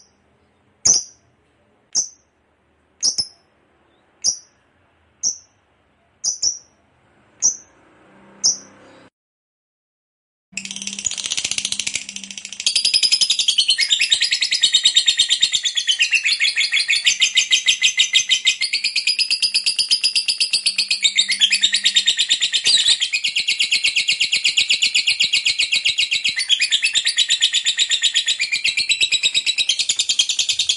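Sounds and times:
lovebird chirps and long harsh chatter: 0:00.9 - 0:01.2, 0:01.9 - 0:02.2, 0:03.0 - 0:03.4, 0:04.2 - 0:04.6, 0:05.2 - 0:05.5, 0:06.2 - 0:06.7, 0:10.6 - 0:30.7.

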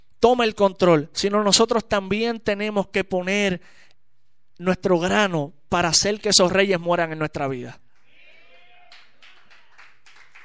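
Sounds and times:
speech: 0:00.2 - 0:03.8, 0:04.6 - 0:07.8
faint applause from a group during a church sermon: 0:08.0 - 0:10.4.

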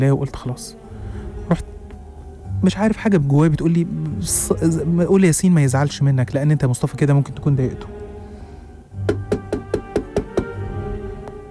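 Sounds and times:
speech: 0:00.0 - 0:00.8, 0:01.5 - 0:01.8, 0:02.6 - 0:08.0
knocking on a wooden bedroom door: 0:09.0 - 0:10.6.

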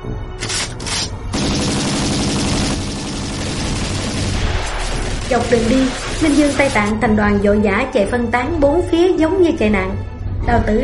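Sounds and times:
gunfire exchange between two sides: 0:00.4 - 0:06.9
speech: 0:05.3 - 0:10.8.

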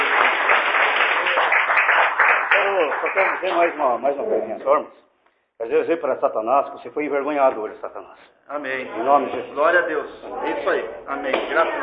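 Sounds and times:
church congregation clapping: 0:00.0 - 0:04.2
speech: 0:03.0 - 0:11.8.

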